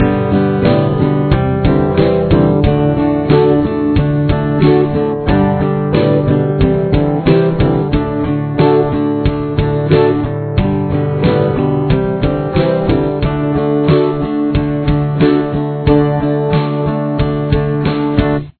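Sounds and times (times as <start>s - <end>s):
guitar with chorus effect: 0.0s - 18.5s.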